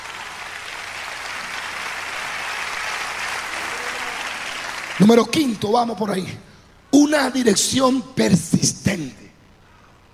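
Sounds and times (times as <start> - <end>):
audience applauding loudly: 0.0 - 6.0
speech: 5.0 - 9.2.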